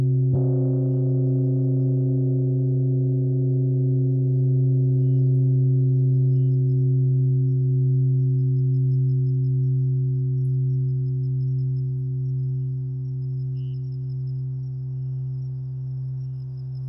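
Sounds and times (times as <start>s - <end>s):
gongs: 0.0s - 15.2s
crickets chirping: 0.0s - 16.8s.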